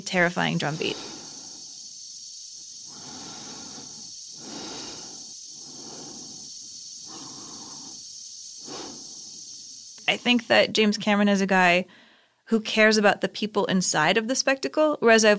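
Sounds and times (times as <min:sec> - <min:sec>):
speech: 0:00.0 - 0:01.1, 0:10.1 - 0:15.3
person breathing slowly and heavily: 0:00.6 - 0:01.9, 0:02.8 - 0:09.4.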